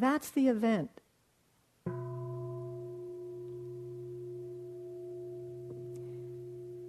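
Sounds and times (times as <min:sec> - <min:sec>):
speech: 0:00.0 - 0:01.0
struck bell ringing out: 0:01.9 - 0:06.8.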